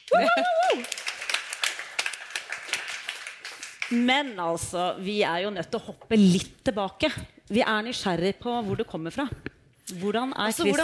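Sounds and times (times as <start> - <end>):
small applause: 0.0 - 4.0
speech: 0.1 - 1.0, 3.9 - 10.8.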